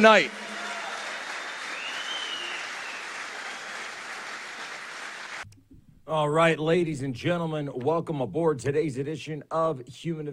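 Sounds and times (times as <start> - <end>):
speech: 0.0 - 0.4, 6.1 - 10.3
audience applause at a political rally: 0.0 - 5.4.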